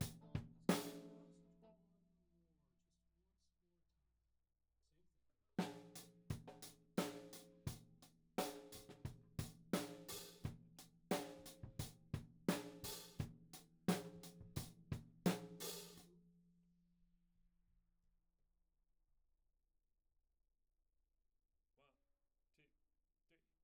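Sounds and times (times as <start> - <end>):
tom drum: 0.0 - 1.1, 5.6 - 7.8, 8.4 - 16.0.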